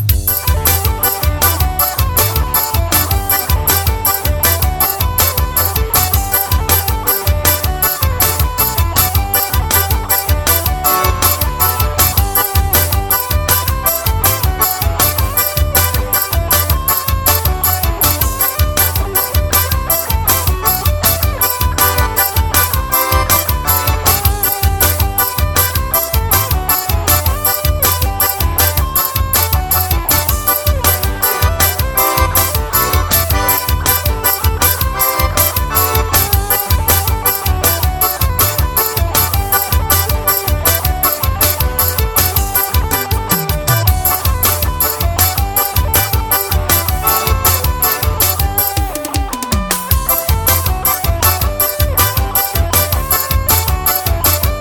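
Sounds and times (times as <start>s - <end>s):
rasta-pé guitar solo: 0.2s - 54.5s.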